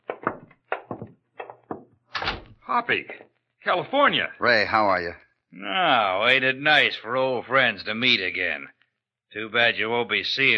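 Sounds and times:
door being opened with heavy wooden clunks and rattles: 0.0s - 2.6s
speech: 2.7s - 10.5s.

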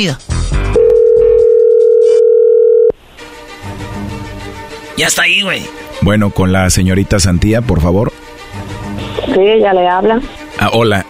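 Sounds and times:
speech: 0.0s - 0.3s, 5.0s - 8.1s, 9.4s - 11.0s
telephone ringback tone: 0.8s - 2.9s.

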